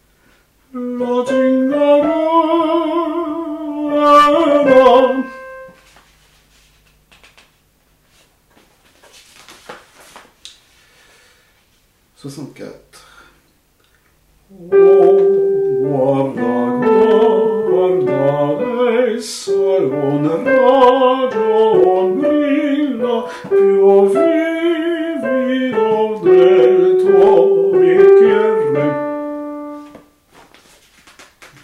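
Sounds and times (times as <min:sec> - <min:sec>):
alto voices of a chorus singing: 0:01.3 - 0:05.8, 0:14.7 - 0:29.7.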